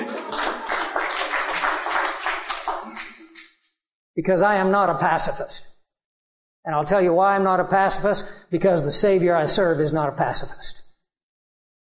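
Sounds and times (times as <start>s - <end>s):
audience applause: 0.0s - 3.3s
speech: 4.2s - 5.7s, 6.6s - 10.8s.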